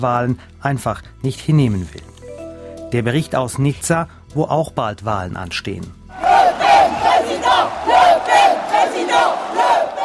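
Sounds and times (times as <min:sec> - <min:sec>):
speech: 0:00.0 - 0:02.1, 0:02.9 - 0:06.3
crowd cheering at a political rally for Jean-Marie Le Pen: 0:06.1 - 0:10.0.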